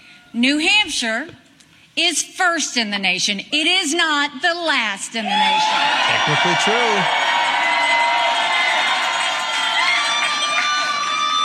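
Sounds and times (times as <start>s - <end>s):
speech: 0.3s - 1.4s, 2.0s - 7.3s
large crowd cheering and shouting: 5.2s - 11.4s.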